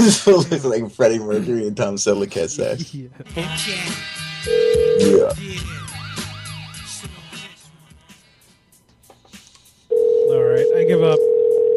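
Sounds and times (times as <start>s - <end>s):
speech: 0.0s - 5.7s, 11.0s - 11.3s
phone ringing: 4.5s - 5.4s, 9.9s - 11.7s.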